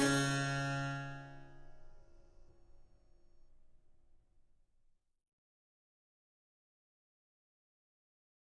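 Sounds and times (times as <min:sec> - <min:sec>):
sync wavetable synth: 0:00.0 - 0:01.4.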